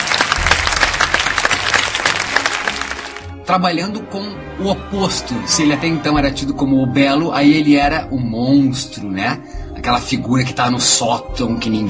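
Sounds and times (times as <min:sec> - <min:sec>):
audience applause: 0:00.0 - 0:03.4
speech: 0:03.5 - 0:11.8.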